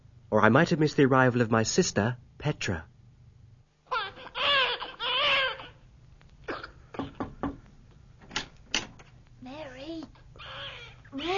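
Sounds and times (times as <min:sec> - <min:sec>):
speech: 0:00.3 - 0:02.9
newborn baby crying: 0:03.8 - 0:05.8, 0:10.3 - 0:11.3.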